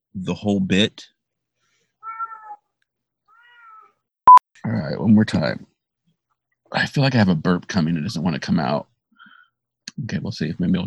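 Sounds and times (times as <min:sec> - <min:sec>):
speech: 0:00.2 - 0:01.1, 0:04.6 - 0:05.7, 0:06.7 - 0:08.9, 0:09.9 - 0:10.8
cat meowing: 0:02.0 - 0:02.6, 0:03.3 - 0:04.0.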